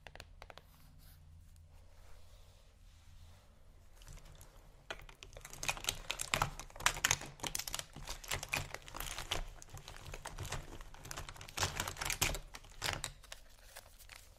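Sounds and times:
rummaging through a makeup bag: 0:04.0 - 0:14.2.

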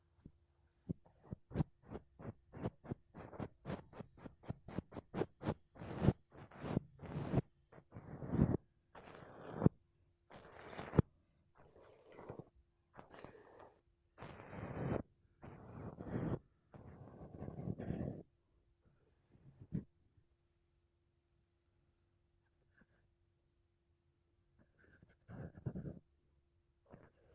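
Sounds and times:
makeup brushes and a sponge rubbing across a microphone: 0:00.9 - 0:18.3, 0:19.3 - 0:19.9, 0:24.6 - 0:26.0.

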